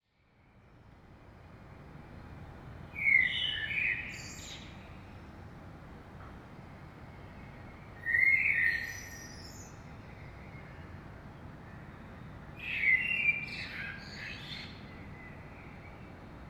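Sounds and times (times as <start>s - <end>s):
common blackbird singing fluted whistled phrases in the morning in Saint-Gilles: 3.0s - 4.6s, 8.1s - 9.8s, 12.6s - 14.9s.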